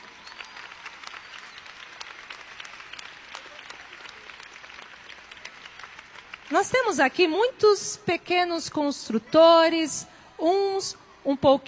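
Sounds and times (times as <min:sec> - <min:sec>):
audience applause: 0:00.0 - 0:07.3
speech: 0:06.5 - 0:11.6.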